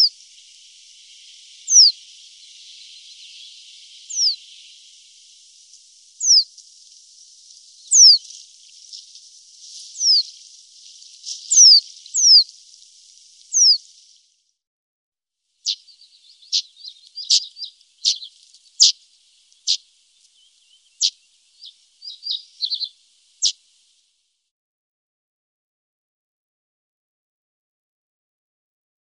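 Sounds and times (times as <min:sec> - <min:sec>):
common reed bunting singing: 0:00.0 - 0:13.9, 0:15.6 - 0:23.6.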